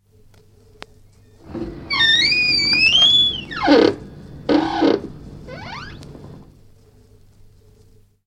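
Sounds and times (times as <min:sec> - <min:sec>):
doors: 0:01.4 - 0:06.5.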